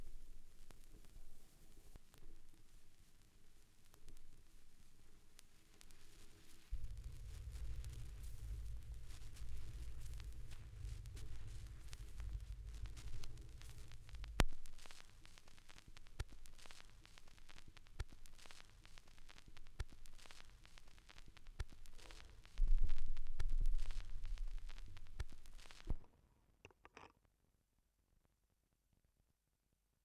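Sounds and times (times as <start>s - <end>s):
vinyl record noise: 2.0s - 26.0s.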